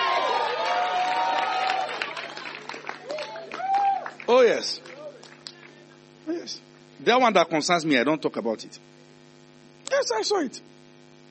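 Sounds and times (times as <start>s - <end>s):
audience clapping: 0.0s - 6.0s
speech: 4.4s - 4.9s, 6.4s - 8.9s, 10.0s - 10.7s.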